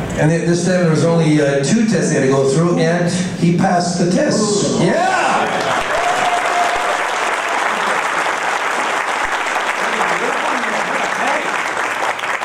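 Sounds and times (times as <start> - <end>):
speech: 0.2 - 5.4
crowd applauding: 5.4 - 12.4.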